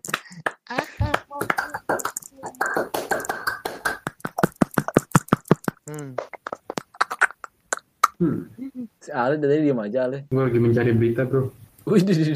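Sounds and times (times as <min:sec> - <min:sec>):
hand clapping: 0:00.0 - 0:07.2
speech: 0:00.7 - 0:03.1, 0:08.2 - 0:12.3.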